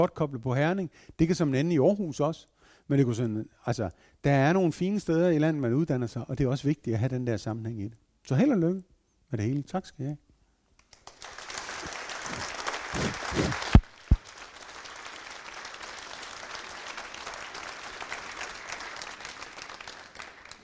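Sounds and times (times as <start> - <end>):
speech: 0.0 - 10.2
long applause: 10.9 - 20.6.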